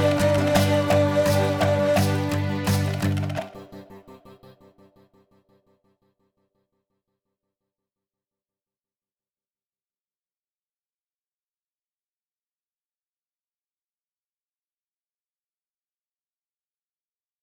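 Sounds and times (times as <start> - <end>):
sad guitar music: 0.0 - 4.6.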